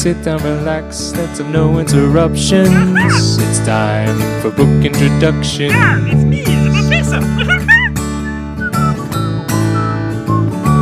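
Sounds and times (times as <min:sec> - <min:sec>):
speech: 0:00.0 - 0:07.7
laughter: 0:02.7 - 0:03.4, 0:05.7 - 0:08.4
whistled melody: 0:08.1 - 0:10.8.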